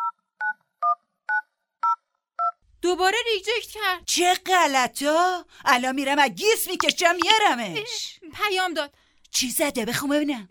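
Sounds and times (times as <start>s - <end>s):
speech: 2.8s - 10.4s
touch-tone phone dialing beeps: 6.8s - 7.4s.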